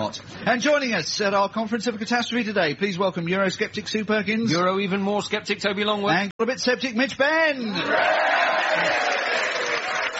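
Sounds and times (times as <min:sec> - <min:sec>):
speech: 0:00.1 - 0:09.5
live comedy show audience cheering: 0:07.7 - 0:10.1
live comedy show audience clapping: 0:08.0 - 0:10.1.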